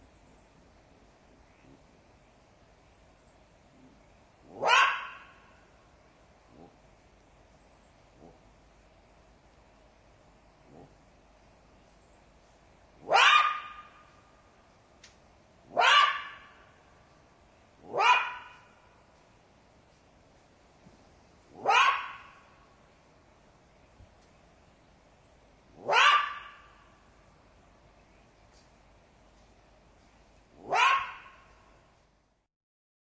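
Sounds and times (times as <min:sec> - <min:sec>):
jackal yelping: 0:04.5 - 0:05.5, 0:13.0 - 0:14.2, 0:15.7 - 0:16.7, 0:17.8 - 0:18.7, 0:21.5 - 0:22.5, 0:25.8 - 0:26.9, 0:30.6 - 0:31.6.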